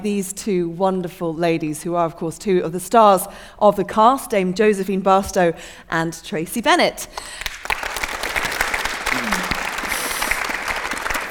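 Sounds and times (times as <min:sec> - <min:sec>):
speech: 0:00.0 - 0:07.9
audience applause: 0:07.2 - 0:11.2.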